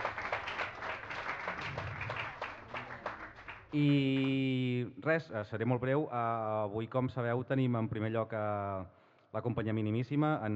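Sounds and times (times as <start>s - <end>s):
audience applause: 0.0s - 4.4s
speech: 3.7s - 10.5s.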